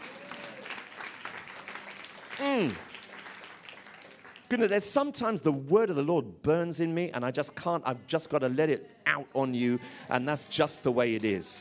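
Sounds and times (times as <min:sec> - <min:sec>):
crowd clapping: 0:00.0 - 0:04.9
speech: 0:02.4 - 0:02.9, 0:04.5 - 0:11.5.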